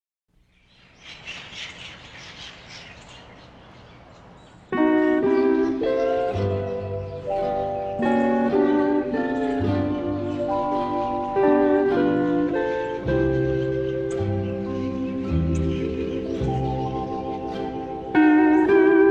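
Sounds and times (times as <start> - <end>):
instrumental music: 4.7 - 19.0.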